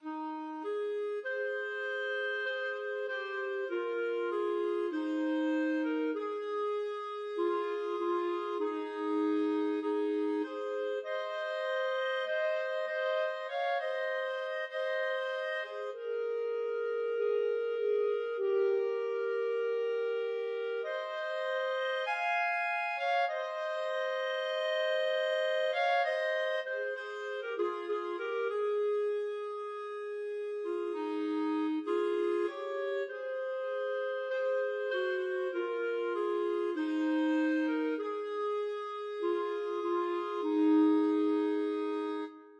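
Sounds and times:
clarinet duet: 0.0 - 42.5.

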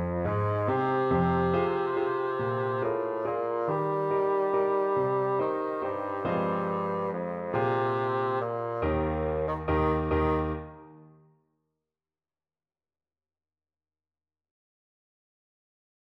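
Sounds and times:
bassoon: 0.0 - 11.2.

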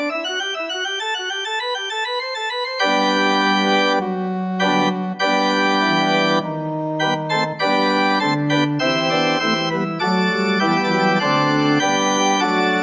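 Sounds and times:
organ playing a hymn: 0.0 - 12.8.

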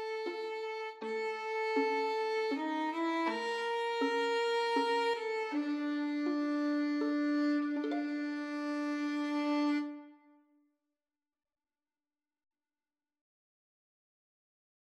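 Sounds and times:
violin duet: 0.0 - 10.3.

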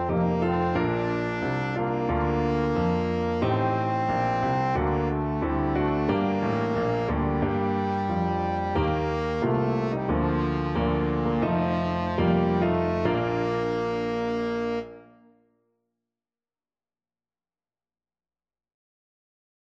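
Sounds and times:
trombone playing a national anthem: 0.0 - 15.0.

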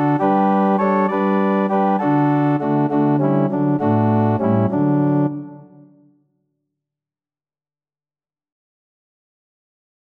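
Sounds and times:
organ playing: 0.0 - 5.8.

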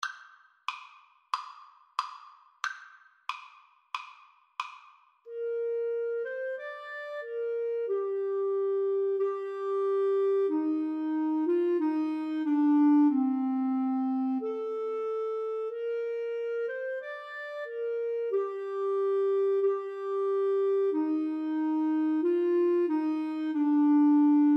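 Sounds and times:
flute and clarinet duet: 5.3 - 24.5.

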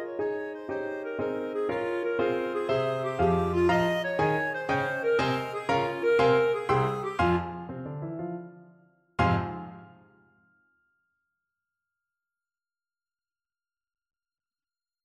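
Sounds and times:
clarinet playing a tarantella: 0.0 - 8.0, 9.2 - 10.1.

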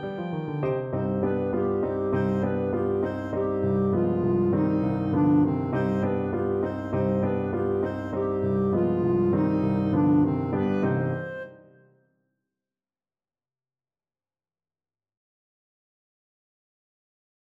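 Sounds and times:
clarinet playing: 0.0 - 11.8.

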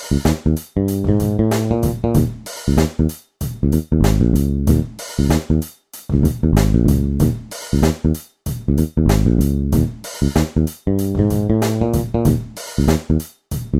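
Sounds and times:
bass guitar: 0.0 - 13.7.

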